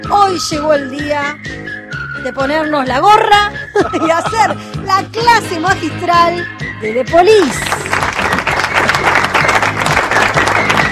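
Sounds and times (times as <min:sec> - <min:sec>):
speech: 0:00.0 - 0:07.8
laughter: 0:03.8 - 0:04.7
audience applause: 0:07.6 - 0:10.8.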